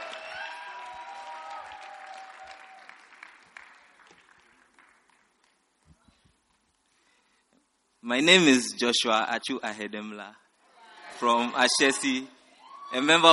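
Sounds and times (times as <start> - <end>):
audience applause welcoming a speaker to share a testimony at a gathering: 0.0 - 5.5
speech: 8.1 - 10.4, 11.2 - 13.3.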